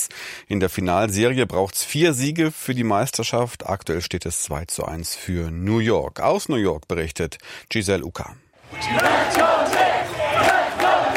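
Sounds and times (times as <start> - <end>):
speech: 0.1 - 9.9
large crowd cheering for a basketball team: 8.6 - 11.1.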